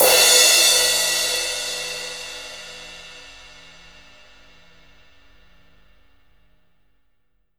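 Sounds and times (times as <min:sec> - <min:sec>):
crash cymbal on a drum kit: 0:00.0 - 0:05.6.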